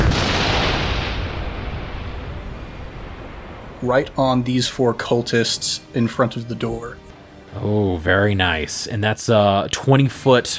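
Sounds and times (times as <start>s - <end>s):
thunder wave spell blast: 0.0s - 5.6s
speech: 3.8s - 7.0s, 7.6s - 10.5s.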